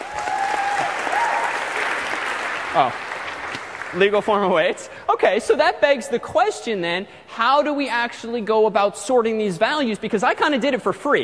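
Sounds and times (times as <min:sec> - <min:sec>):
lecture audience applause: 0:00.0 - 0:04.6
speech: 0:02.8 - 0:03.0, 0:03.9 - 0:11.2.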